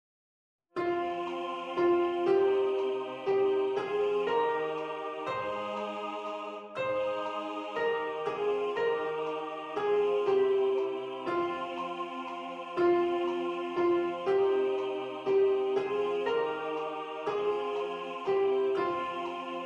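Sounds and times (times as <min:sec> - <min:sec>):
piano: 0:00.8 - 0:19.6
soprano singing: 0:00.8 - 0:19.6.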